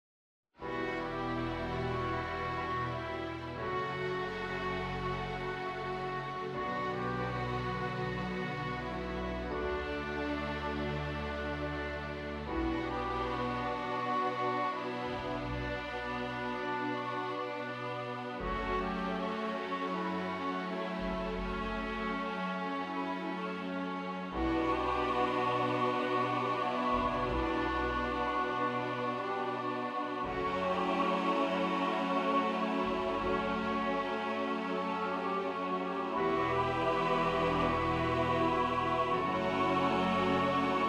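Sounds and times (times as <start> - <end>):
accordion accompaniment: 0.6 - 40.8.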